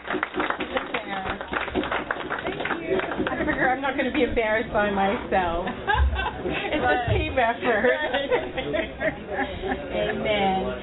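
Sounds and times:
crowd applause: 0.0 - 4.3
laughter: 3.1 - 3.8, 5.6 - 10.8
speech: 3.9 - 10.8.

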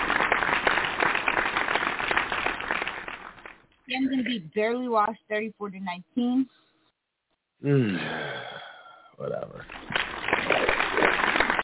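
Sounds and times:
quiet polite golf clap: 0.0 - 3.6, 9.6 - 11.6
speech: 4.0 - 6.7, 7.6 - 8.6, 9.2 - 10.0.

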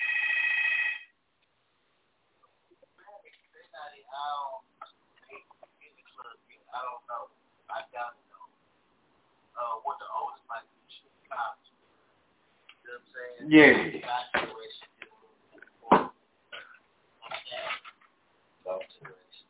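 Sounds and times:
phone ringing: 0.0 - 1.1
people talking: 3.0 - 8.5, 9.6 - 11.6, 12.9 - 15.2, 15.8 - 17.9, 18.7 - 19.4.

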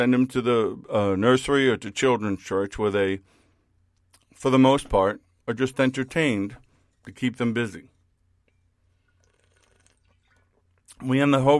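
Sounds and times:
speech: 0.0 - 3.4, 4.4 - 7.9, 11.0 - 11.5
person drinking water: 8.8 - 11.0.

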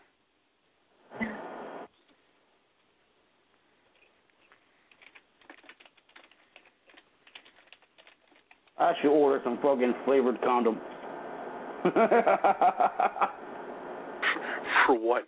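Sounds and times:
keyboard typing a Facebook post: 4.8 - 8.8
speech: 8.8 - 10.9, 11.8 - 13.6, 14.9 - 15.2
laughter: 11.8 - 13.4.

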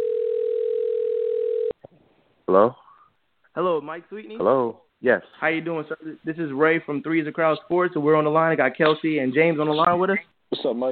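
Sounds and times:
telephone dial tone: 0.0 - 1.8
speech: 2.5 - 2.8, 3.6 - 10.9.

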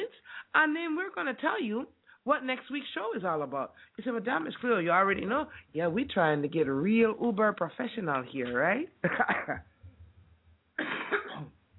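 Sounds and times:
speech: 0.5 - 9.7
coughing: 9.0 - 9.8, 10.8 - 11.6.

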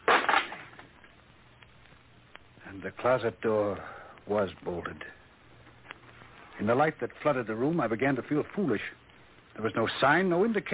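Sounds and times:
wooden shutter being broken open: 0.0 - 0.8
speech: 2.7 - 5.2, 6.6 - 9.0, 9.6 - 10.7.

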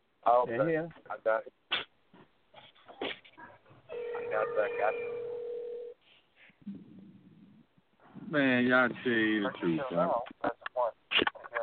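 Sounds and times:
speech: 0.2 - 1.6, 4.3 - 5.3, 8.3 - 11.4
telephone hang-up tone: 3.9 - 6.0.

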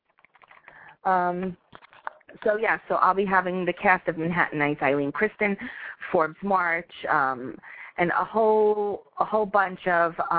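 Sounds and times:
typing on a computer keyboard: 0.0 - 1.0
speech: 1.0 - 1.7, 2.4 - 10.3.

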